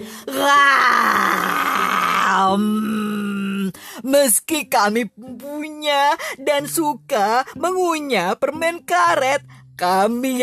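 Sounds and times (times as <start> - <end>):
voice imitating tigers growling: 0.3 - 3.2
speech: 2.4 - 3.0, 4.2 - 10.4.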